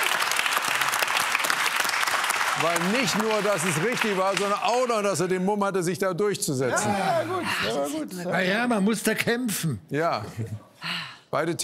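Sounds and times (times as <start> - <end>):
audience applauding loudly: 0.0 - 5.3
speech: 2.6 - 11.6.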